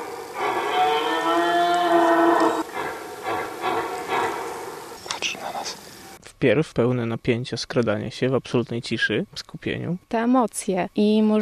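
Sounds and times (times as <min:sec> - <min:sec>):
red deer stags roaring during the rut: 0:00.0 - 0:05.0
speech: 0:06.4 - 0:11.4.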